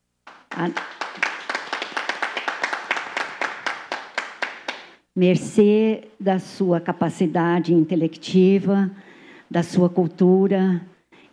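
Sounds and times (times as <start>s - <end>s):
audience applause: 0.3s - 5.0s
speech: 0.6s - 1.0s, 5.2s - 11.3s.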